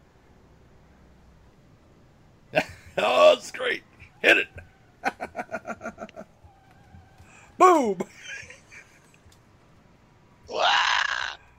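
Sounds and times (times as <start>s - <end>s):
speech: 2.5s - 4.6s, 7.8s - 8.2s
laughter: 5.0s - 6.3s, 8.0s - 9.2s
Wilhelm scream sound effect: 10.5s - 11.5s.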